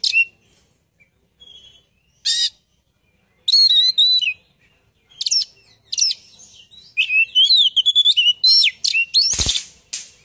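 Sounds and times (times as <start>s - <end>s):
bird chirping and twittering: 0.0s - 10.2s.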